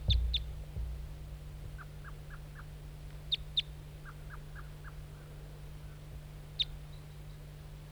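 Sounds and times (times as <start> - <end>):
wild bird calling near decoy: 0.0 - 0.6, 1.6 - 5.3, 5.9 - 7.5.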